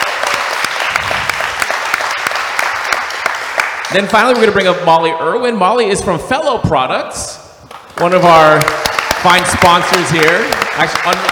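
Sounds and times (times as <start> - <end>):
audience applause: 0.0 - 4.5, 8.2 - 11.3
speech: 3.9 - 7.4, 8.0 - 11.3.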